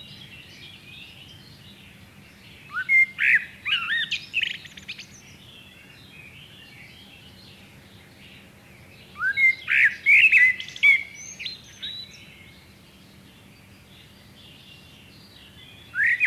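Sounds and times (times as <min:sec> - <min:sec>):
Common Blackbird Turdus merula merula: 0:00.0 - 0:16.2.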